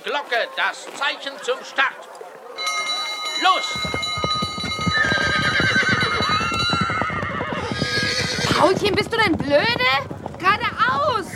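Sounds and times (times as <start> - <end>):
speech: 0.0 - 2.2, 3.4 - 4.0, 8.6 - 11.3
pony hooves trotting: 0.3 - 11.3
pony whinnying: 4.9 - 9.1.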